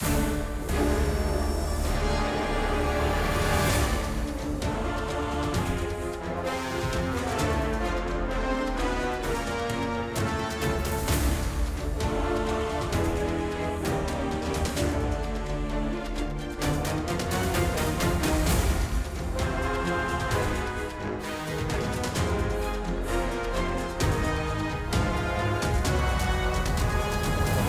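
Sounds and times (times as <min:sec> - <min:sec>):
battle music: 0:00.0 - 0:27.6.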